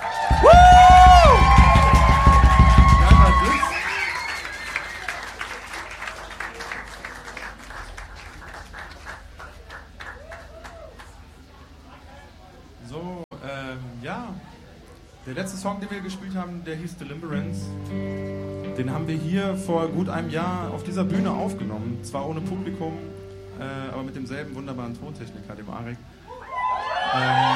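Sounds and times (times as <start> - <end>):
audience applause: 0.0 - 12.0, 26.5 - 27.5
speech: 15.4 - 26.1, 27.1 - 27.5.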